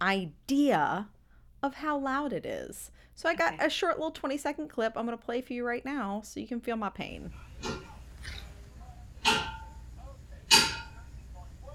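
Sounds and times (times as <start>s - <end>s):
speech: 0.1s - 8.4s
loud metallic clanks with a bright ringing tail: 7.3s - 11.5s.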